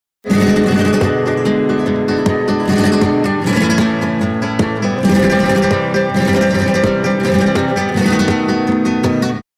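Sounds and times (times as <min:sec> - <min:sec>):
harmonic flamenco music: 0:00.2 - 0:09.4.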